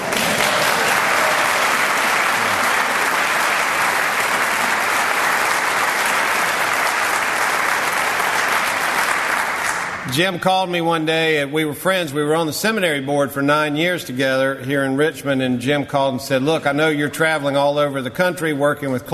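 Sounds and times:
audience applause in church: 0.0 - 10.0
speech: 10.2 - 19.1.

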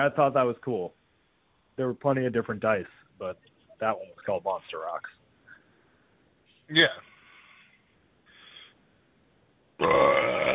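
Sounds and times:
speech: 0.0 - 1.0, 1.8 - 5.2, 6.7 - 7.1, 9.8 - 10.5
burp: 9.8 - 10.5.

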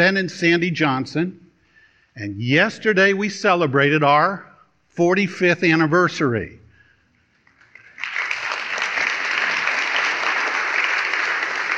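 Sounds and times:
speech: 0.0 - 1.4, 2.2 - 6.6
audience applause: 7.5 - 11.7.

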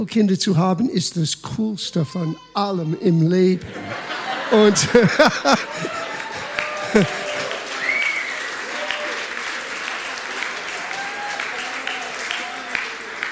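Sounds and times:
speech: 0.0 - 6.0, 6.9 - 7.2
laughter: 3.6 - 7.9
audience applause: 3.7 - 13.2.

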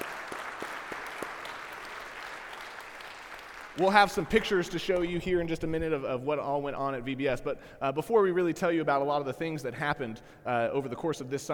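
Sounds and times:
audience applause: 0.0 - 4.4
speech: 3.8 - 11.5.

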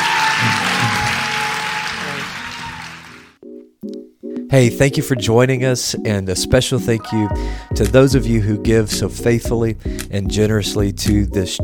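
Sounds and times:
church congregation applauding new members: 0.0 - 3.4
speech: 4.5 - 11.6.

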